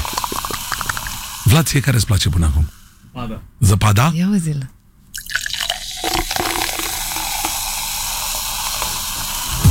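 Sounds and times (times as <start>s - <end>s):
fizzy acidic juice poured into a glass: 0.0s - 1.4s, 5.1s - 9.5s
speech: 1.5s - 4.8s.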